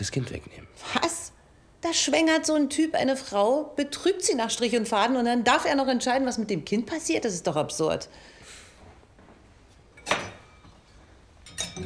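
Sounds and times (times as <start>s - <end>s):
speech: 0.0s - 1.2s, 1.8s - 8.3s
glasses clinking and rattling in a dishwasher rack: 10.0s - 10.8s, 11.4s - 11.8s.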